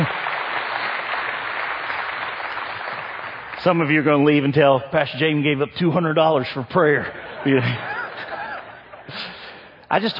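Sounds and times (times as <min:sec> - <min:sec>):
audience clapping: 0:00.0 - 0:04.8
speech: 0:03.6 - 0:07.9, 0:09.9 - 0:10.1
laughter: 0:06.8 - 0:09.6.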